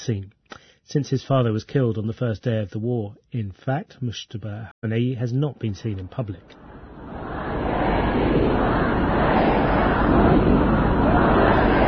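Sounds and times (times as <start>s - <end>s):
speech: 0.0s - 6.7s
crowd of mourners shouting slogans: 6.6s - 11.8s.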